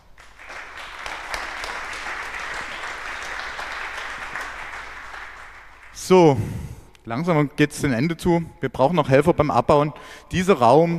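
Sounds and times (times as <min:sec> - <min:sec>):
applause: 0:00.0 - 0:06.2
speech: 0:06.1 - 0:10.9.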